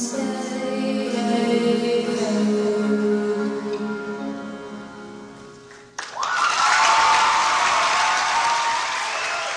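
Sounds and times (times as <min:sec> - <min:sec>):
harmonized singing: 0:00.0 - 0:05.2
crowd applauding: 0:06.0 - 0:09.5.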